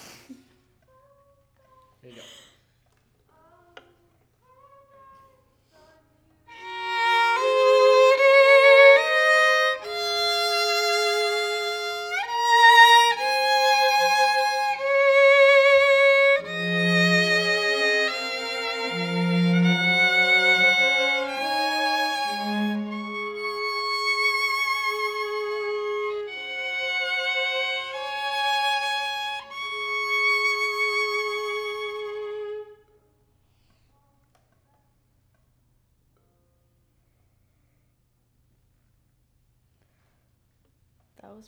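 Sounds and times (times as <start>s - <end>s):
violin: 6.5s - 33.0s.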